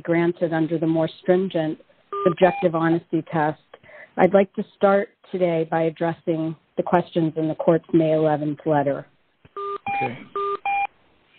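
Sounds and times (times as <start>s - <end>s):
speech: 0.0s - 9.1s, 10.0s - 10.4s
hiss: 0.1s - 11.3s
telephone dialing beeps: 2.2s - 2.7s, 9.6s - 10.9s.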